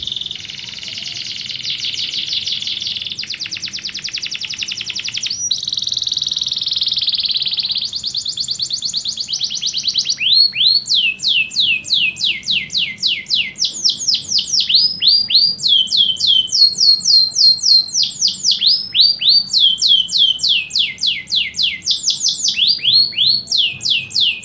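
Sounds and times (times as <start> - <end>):
canary singing descending whistled notes: 0.0 - 24.4.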